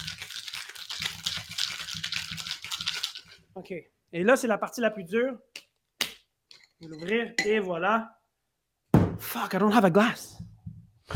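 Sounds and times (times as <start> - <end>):
liquid being poured and foaming: 0.0 - 3.4
speech: 3.6 - 5.6, 6.8 - 8.2, 9.3 - 10.4.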